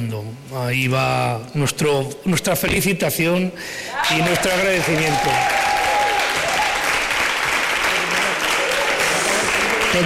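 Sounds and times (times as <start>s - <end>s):
speech: 0.0s - 5.8s
audience applause: 4.0s - 10.0s.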